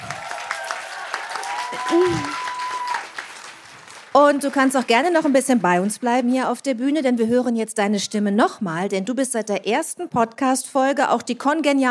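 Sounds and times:
audience applause: 0.0 - 6.4
speech: 1.7 - 2.4, 4.2 - 11.8.

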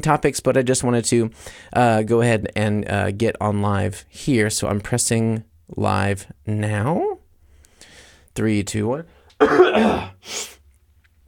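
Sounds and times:
speech: 0.0 - 7.2, 8.4 - 10.5
voiced throat-clearing: 9.4 - 10.2.

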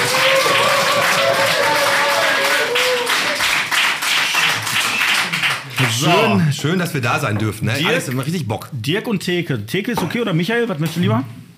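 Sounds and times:
clapping in the background: 0.0 - 6.0
speech: 6.0 - 11.5.

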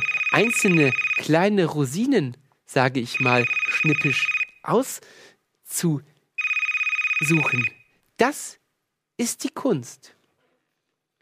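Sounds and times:
telephone ringing for an incoming call: 0.0 - 1.3, 3.2 - 4.6, 6.4 - 7.8
speech: 0.4 - 6.1, 7.2 - 8.6, 9.2 - 10.2.

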